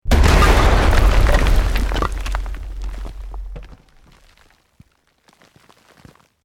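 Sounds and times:
medium stone rock explosion: 0.0 - 4.4.

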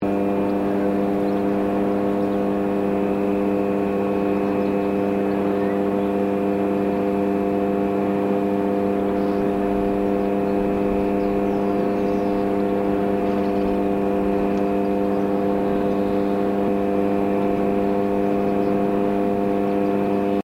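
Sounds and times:
wind turbine power transformer hum: 0.0 - 20.4.

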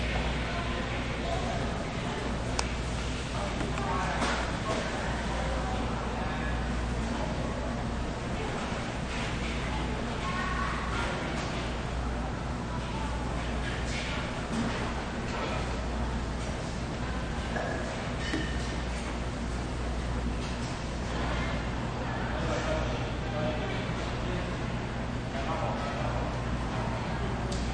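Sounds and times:
food court ambience: 0.0 - 27.7.

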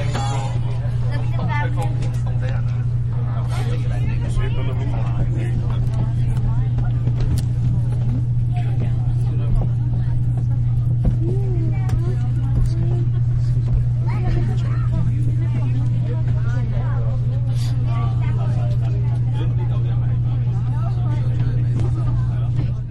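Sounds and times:
passengers getting on the bus: 0.0 - 22.8
various people having conversations in Chinese and Spanish: 0.0 - 22.8.

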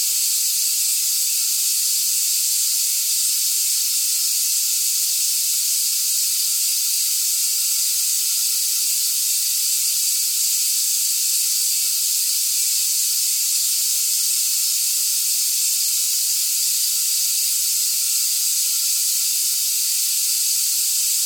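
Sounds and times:
sci-fi gas leak from a hose: 0.0 - 21.2.

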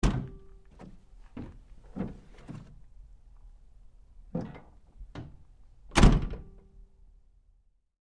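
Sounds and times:
GMC Savana truck rear door opening and closing: 0.0 - 2.8, 4.3 - 6.6.

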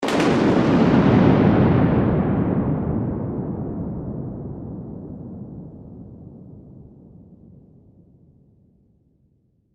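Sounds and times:
thunder clap: 0.0 - 6.1.

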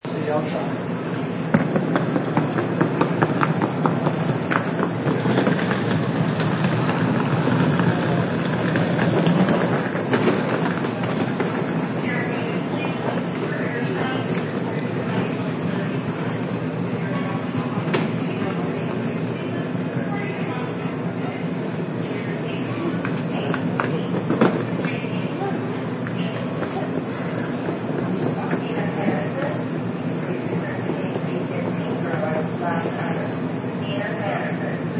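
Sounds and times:
people talking at airport baggage claim: 0.0 - 34.9
luggage rolling at airport baggage claim: 1.5 - 16.6.

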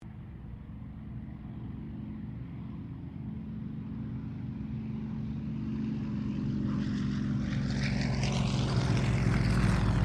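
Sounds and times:
T-28D Trojan aircraft passing: 0.0 - 10.0.

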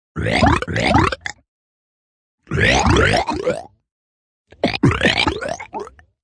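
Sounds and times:
rippling pitch-bent burps from human voice: 0.2 - 1.4, 2.4 - 3.8, 4.5 - 6.0.

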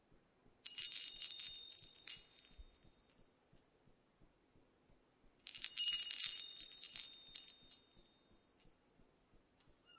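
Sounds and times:
wind chimes tinkling: 0.7 - 3.7, 5.5 - 9.9.

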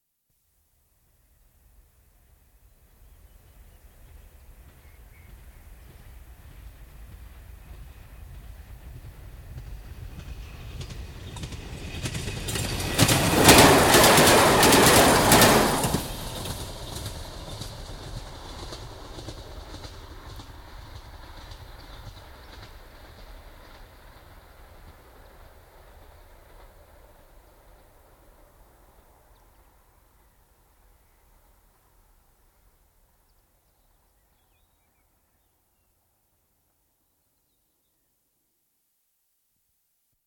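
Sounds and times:
diesel railcar passing at high speed: 3.3 - 31.0.

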